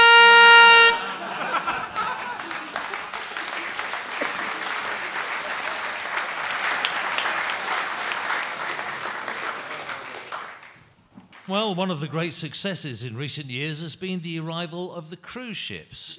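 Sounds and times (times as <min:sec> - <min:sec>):
car horn honking: 0:00.0 - 0:01.1
laughter: 0:00.8 - 0:10.3
speech: 0:11.5 - 0:16.1.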